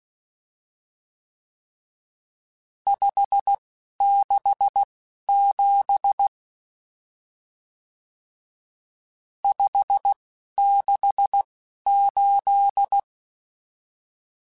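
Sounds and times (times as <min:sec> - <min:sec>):
Morse code CW code groups: 0:02.9 - 0:06.3, 0:09.5 - 0:13.0.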